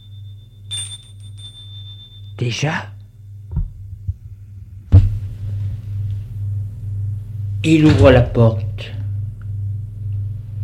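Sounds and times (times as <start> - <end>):
electronic doorbell ringing: 0.0 - 2.5
steady low hum: 0.0 - 10.6
speech: 2.4 - 3.0, 7.6 - 9.0.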